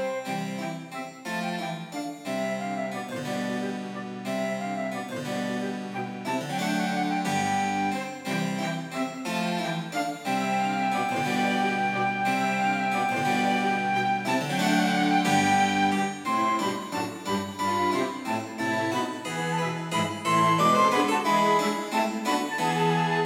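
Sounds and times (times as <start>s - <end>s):
cello playing a passepied: 0.0s - 23.2s
flute playing a passepied: 0.0s - 23.2s
harpsichord playing a passepied: 0.0s - 23.2s
violin playing a passepied: 0.0s - 23.2s.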